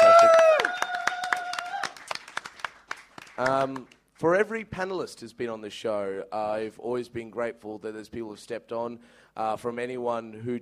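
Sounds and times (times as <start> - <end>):
person cheering: 0.0 - 2.2
audience applause: 0.0 - 4.0
speech: 3.4 - 10.6.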